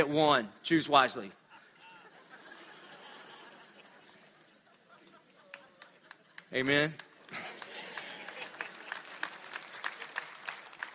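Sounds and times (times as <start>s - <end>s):
speech: 0.0s - 1.4s, 6.5s - 7.4s
laughter: 1.3s - 10.2s
spattering applause: 5.4s - 10.9s.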